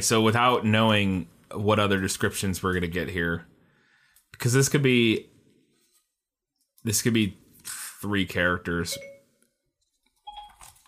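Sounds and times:
speech: 0.0 - 3.5, 4.3 - 5.3, 6.8 - 9.1
phone voice assistant activation chime: 8.9 - 9.3, 10.3 - 10.7.

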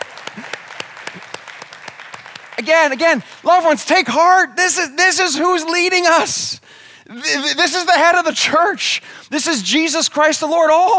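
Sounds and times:
church congregation clapping for Jesus during a service: 0.0 - 5.2
speech: 2.6 - 10.9.

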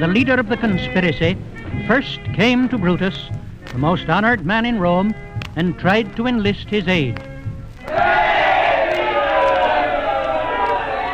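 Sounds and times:
speech: 0.0 - 7.3
crowd shouting: 7.8 - 11.1.

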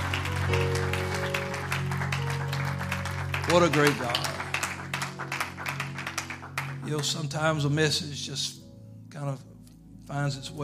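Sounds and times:
audience hand clapping: 0.0 - 7.6
speech: 3.5 - 4.3, 6.9 - 8.6, 9.2 - 9.5, 10.1 - 10.6.

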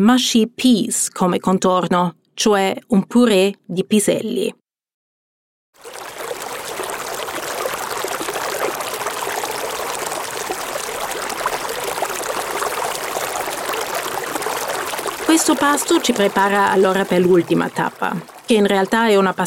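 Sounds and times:
speech: 0.0 - 4.6, 15.4 - 19.4
stream of water trickling over stones: 5.8 - 19.4.

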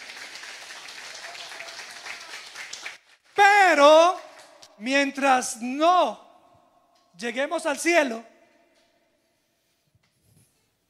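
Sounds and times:
audience applause: 0.0 - 3.2
speech: 4.8 - 6.2, 7.2 - 8.3.

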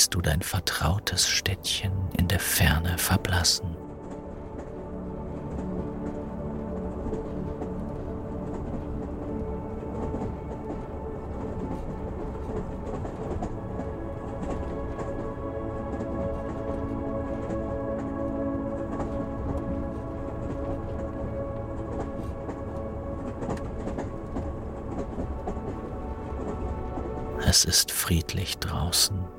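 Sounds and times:
speech: 0.0 - 3.9, 27.6 - 29.3
moving train rumble heard inside the carriage at night: 0.0 - 29.3.

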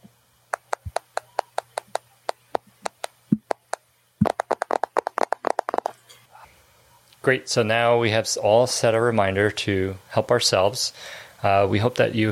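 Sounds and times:
tapping on a phone screen: 0.5 - 5.9
speech: 7.2 - 12.2.

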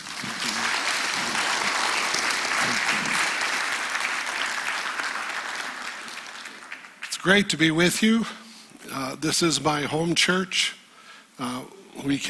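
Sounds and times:
audience applause in a church welcoming a speaker: 0.0 - 7.3
speech: 7.2 - 8.4, 9.2 - 10.8, 11.4 - 12.2.

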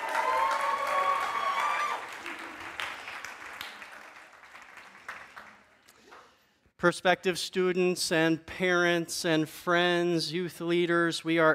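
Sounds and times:
church audience applause welcoming visitors: 0.0 - 6.3
speech: 6.8 - 11.5.

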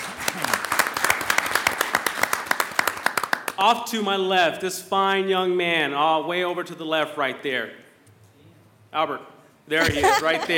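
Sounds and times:
audience applauding: 0.0 - 3.6
speech: 3.6 - 7.8, 8.9 - 10.5
laughter: 9.8 - 10.5.

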